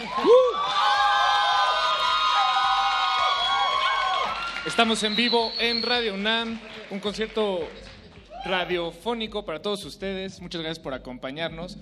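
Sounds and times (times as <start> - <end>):
audience applause at live concert: 0.0 - 8.6
speech: 4.8 - 11.7.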